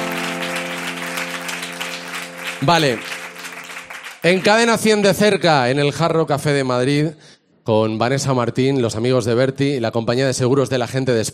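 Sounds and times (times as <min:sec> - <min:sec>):
audience applause: 0:00.0 - 0:05.0
speech: 0:02.6 - 0:03.1, 0:04.2 - 0:11.3.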